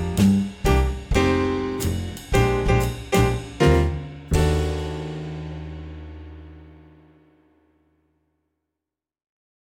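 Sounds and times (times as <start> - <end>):
swing etude guitar: 0.0 - 5.6.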